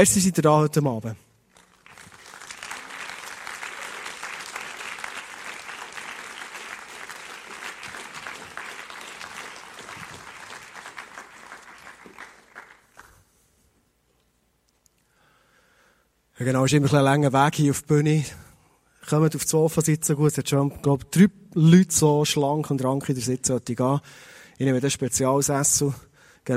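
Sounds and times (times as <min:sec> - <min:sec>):
speech: 0:00.0 - 0:01.2, 0:16.4 - 0:18.4, 0:19.1 - 0:26.5
warm audience applause: 0:01.5 - 0:13.1.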